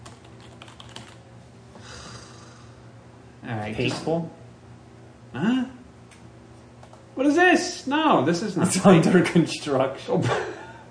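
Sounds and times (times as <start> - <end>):
typing a web address on a computer keyboard: 0.0 - 1.2
speech: 3.5 - 4.4, 5.3 - 5.6, 7.2 - 10.6.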